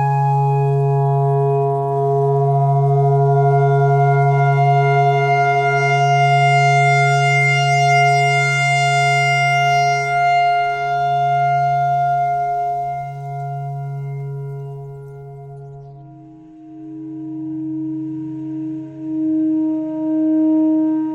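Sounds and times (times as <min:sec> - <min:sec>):
clarinet playing pentatonic notes: 0:00.0 - 0:21.1.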